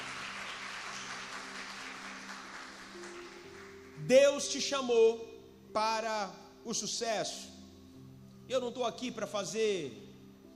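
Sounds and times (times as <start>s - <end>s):
audience applauding: 0.0s - 4.0s
speech: 4.0s - 7.6s, 8.5s - 10.0s.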